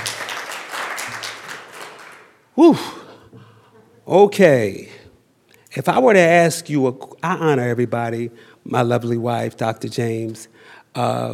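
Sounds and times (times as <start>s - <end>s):
audience clapping hands: 0.0s - 2.5s
speech: 2.6s - 3.0s, 4.1s - 5.0s, 5.8s - 11.3s.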